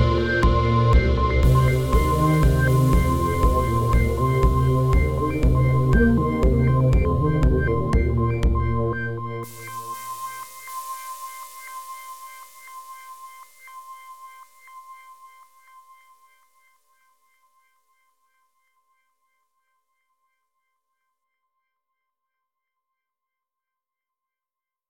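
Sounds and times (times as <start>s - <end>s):
beat with drone: 0.0s - 13.7s.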